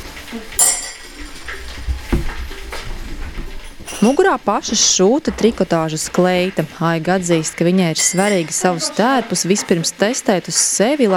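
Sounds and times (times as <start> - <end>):
dishes and cutlery clinking as coffee is prepared: 0.0 - 9.8
speech: 0.3 - 0.8, 3.9 - 11.1.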